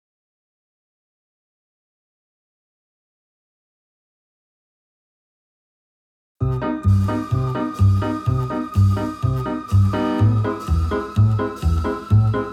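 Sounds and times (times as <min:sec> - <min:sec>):
music: 0:06.4 - 0:12.5.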